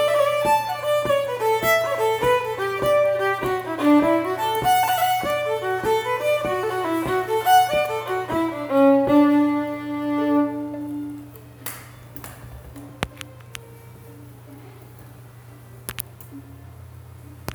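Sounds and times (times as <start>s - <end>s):
jig tune: 0.0s - 11.1s.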